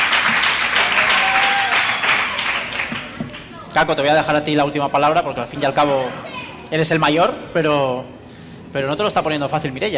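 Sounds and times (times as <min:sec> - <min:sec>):
audience applause: 0:00.0 - 0:03.5
speech: 0:03.8 - 0:09.9.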